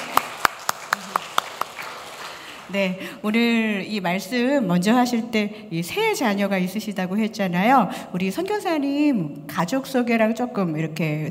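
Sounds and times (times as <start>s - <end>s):
handclaps greeting two missionaries at a church gathering: 0.0s - 2.7s
speech: 2.7s - 11.2s.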